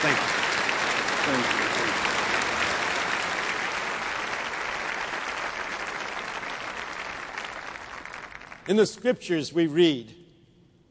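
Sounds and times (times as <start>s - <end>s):
speech: 0.0s - 0.4s, 1.2s - 1.6s, 8.7s - 10.2s
audience applause welcoming a speaker onto the stage: 0.0s - 8.8s.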